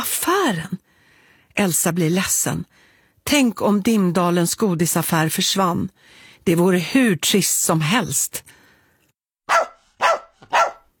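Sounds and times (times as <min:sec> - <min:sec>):
speech: 0:00.4 - 0:00.8, 0:01.6 - 0:08.6
dog barking loudly and shrilly: 0:09.5 - 0:10.9.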